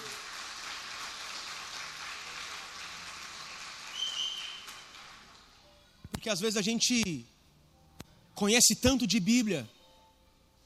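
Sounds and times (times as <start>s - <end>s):
audience applause: 0.0s - 5.5s
speech: 6.2s - 7.3s, 8.4s - 9.8s.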